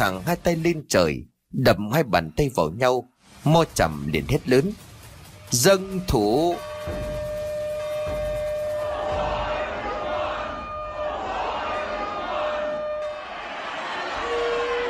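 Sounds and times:
speech: 0.0s - 4.9s, 5.5s - 7.1s
drums beating rapidly: 3.6s - 12.6s
gongs: 4.8s - 14.8s
horn blowing: 5.8s - 14.8s.

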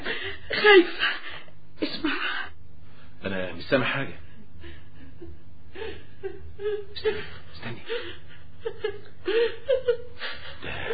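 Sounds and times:
person sobbing in the night: 0.0s - 2.5s, 5.7s - 10.9s
speech: 0.6s - 1.2s, 1.8s - 2.2s, 3.2s - 4.2s, 6.6s - 8.2s.

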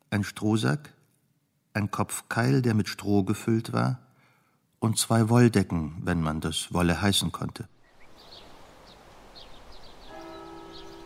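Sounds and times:
speech: 0.1s - 1.0s, 1.8s - 4.0s, 4.8s - 7.8s
bird chirps: 7.8s - 11.0s
church bell striking the quarter hour: 10.0s - 11.0s.

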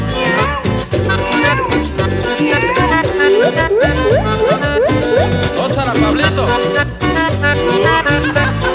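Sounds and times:
voice imitating a cat meowing: 0.0s - 5.6s
loud busy band music: 0.0s - 8.7s.

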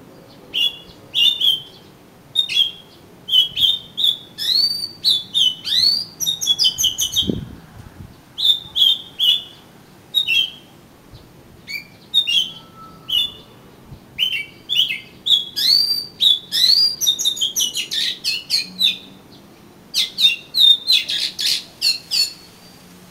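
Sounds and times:
Oriental magpie-robin song: 0.5s - 7.4s, 8.4s - 10.7s, 11.6s - 13.6s, 14.2s - 19.2s, 19.9s - 22.9s.

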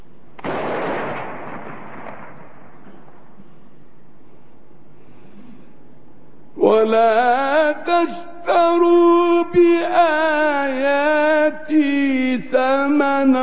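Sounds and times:
Ramadan imsak cannon firing: 0.4s - 3.4s
speech: 6.7s - 13.4s.

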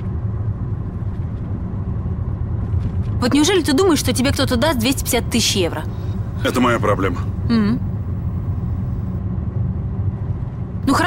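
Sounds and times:
car engine rumble while driving: 0.0s - 11.0s
speech: 3.2s - 7.9s.

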